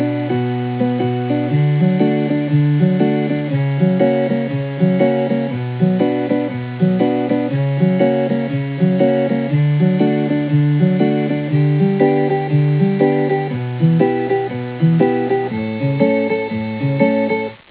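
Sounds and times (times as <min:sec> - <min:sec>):
song: 0:00.0 - 0:17.6.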